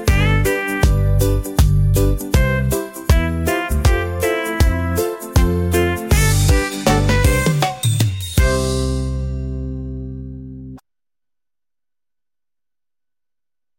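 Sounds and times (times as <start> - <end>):
reggae theme music: 0.0 - 10.7.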